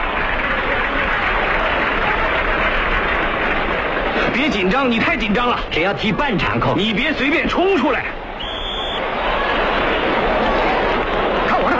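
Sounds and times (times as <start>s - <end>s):
crowd clapping at a football match: 0.0s - 6.8s, 8.4s - 11.7s
stadium crowd cheering at a football match: 0.0s - 11.7s
speech: 4.4s - 8.2s.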